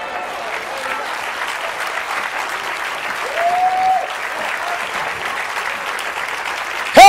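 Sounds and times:
audience applause: 0:00.0 - 0:07.0
person whooping or cheering: 0:03.2 - 0:04.1.

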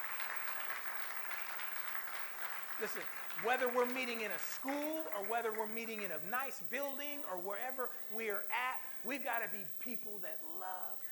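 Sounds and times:
audience clapping: 0:00.0 - 0:07.8
speech: 0:02.8 - 0:11.1.

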